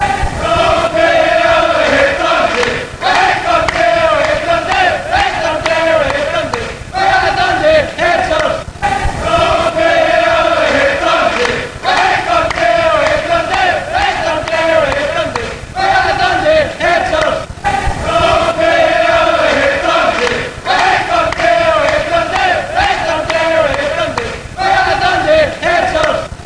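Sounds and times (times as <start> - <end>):
fans chanting: 0.0 - 26.4.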